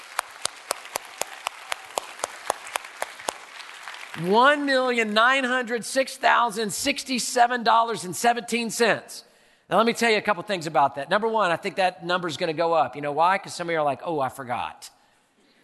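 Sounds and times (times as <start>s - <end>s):
people clapping: 0.0s - 5.7s
speech: 4.2s - 15.0s.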